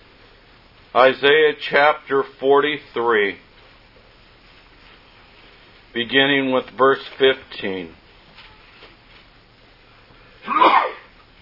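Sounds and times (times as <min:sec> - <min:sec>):
speech: 0:01.0 - 0:03.5, 0:06.0 - 0:08.0
sneeze: 0:10.4 - 0:11.1.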